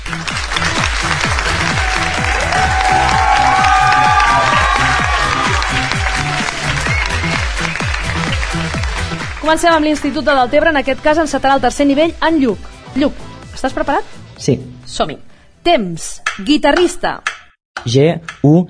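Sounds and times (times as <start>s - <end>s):
loud applause: 0.0s - 9.5s
speech: 9.5s - 18.6s.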